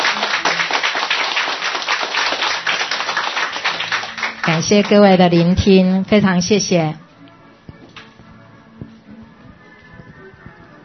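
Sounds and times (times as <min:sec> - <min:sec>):
audience applause for a Buddhist master after a dharma talk: 0:00.0 - 0:05.2
speech: 0:04.4 - 0:07.0.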